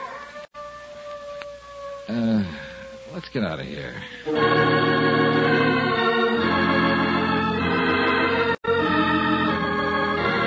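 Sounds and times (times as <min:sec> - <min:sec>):
dog howling: 0:00.0 - 0:03.2
hiss: 0:00.0 - 0:10.4
speech: 0:02.1 - 0:05.2.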